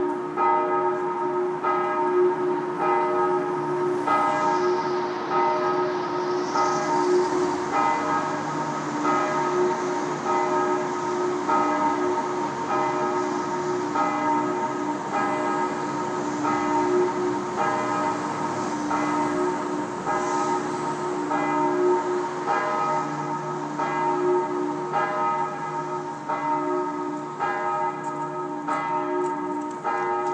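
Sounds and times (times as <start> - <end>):
bells of the Heiliggeistkirche in Schweinfurt ringing: 0.0 - 30.3.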